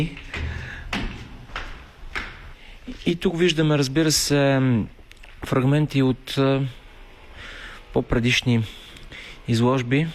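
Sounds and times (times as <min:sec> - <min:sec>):
speech: 0:00.0 - 0:00.2, 0:02.9 - 0:06.8, 0:07.9 - 0:08.8, 0:09.5 - 0:10.1
footsteps walking through art studio: 0:00.0 - 0:03.2.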